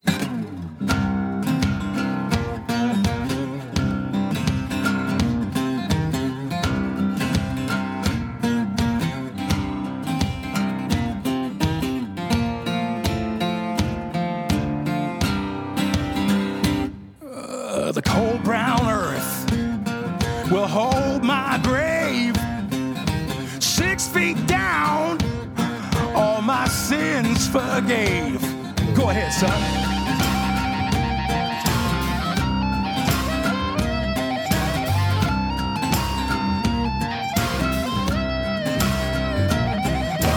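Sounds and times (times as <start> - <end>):
blues rock song with full band: 0.1 - 17.1, 18.0 - 40.3
wailing melodic line: 28.1 - 40.3.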